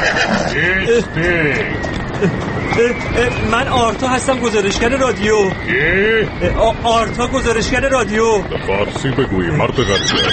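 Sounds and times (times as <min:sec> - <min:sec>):
horse neighing: 0:00.0 - 0:00.8, 0:09.5 - 0:10.3
hooves of an approaching rider clip-clopping: 0:00.0 - 0:10.3
speech: 0:00.0 - 0:10.3.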